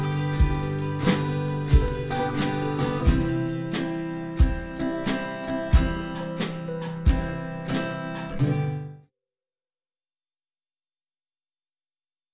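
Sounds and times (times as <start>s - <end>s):
folksy music: 0.0s - 8.8s.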